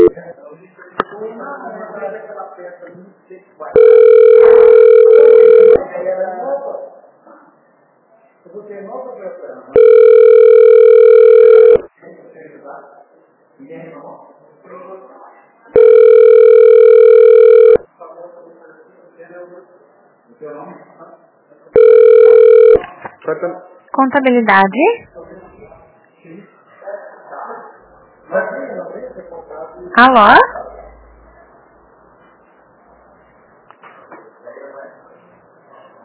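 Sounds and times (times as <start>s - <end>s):
speech: 0.3s - 5.3s, 8.4s - 11.7s, 13.6s - 16.3s, 19.2s - 21.8s, 23.2s - 25.3s, 30.0s - 30.6s
telephone ringing tone while a call is transferred: 3.8s - 5.8s, 9.8s - 11.9s, 15.8s - 17.8s, 21.8s - 22.8s.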